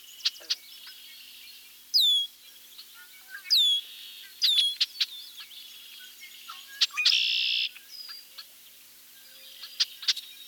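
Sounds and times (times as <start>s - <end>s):
Red-winged Blackbird song and calls: 0.0s - 10.4s.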